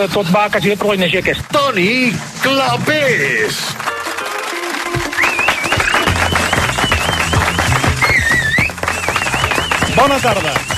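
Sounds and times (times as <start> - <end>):
speech: 0.0 - 3.9, 10.0 - 10.7
studio audience applause: 2.9 - 10.7.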